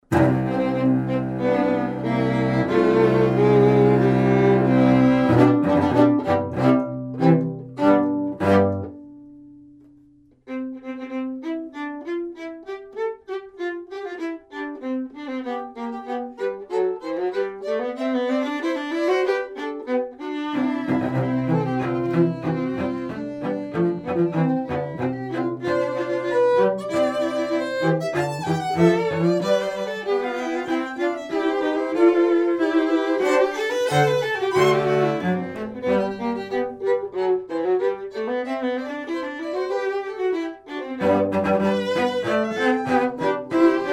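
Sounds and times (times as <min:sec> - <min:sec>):
string trio playing: 0:00.0 - 0:43.9.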